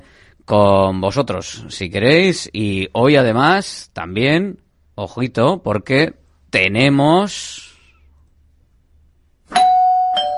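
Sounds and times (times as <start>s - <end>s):
speech: 0.5s - 7.7s
doorbell chime: 9.5s - 10.3s.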